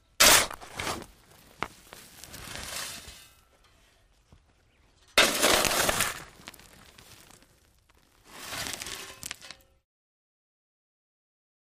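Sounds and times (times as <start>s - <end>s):
shovel digging dirt slowly: 0.0s - 1.1s, 2.1s - 3.5s, 5.0s - 7.3s, 8.3s - 9.8s.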